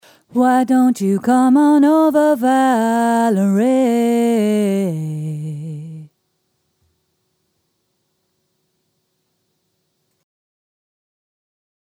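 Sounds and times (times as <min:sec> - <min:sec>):
alto singing: 0:00.3 - 0:06.1.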